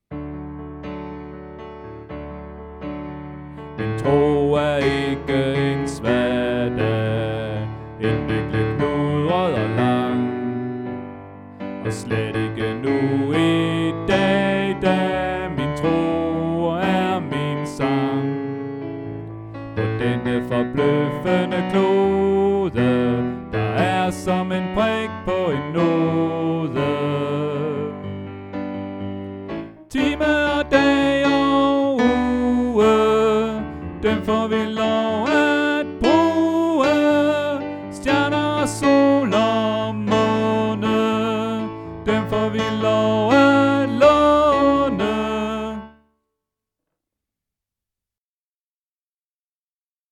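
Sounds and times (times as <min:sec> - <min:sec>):
tenor singing: 0:03.8 - 0:11.1, 0:11.8 - 0:18.8, 0:19.8 - 0:28.2, 0:29.8 - 0:46.0.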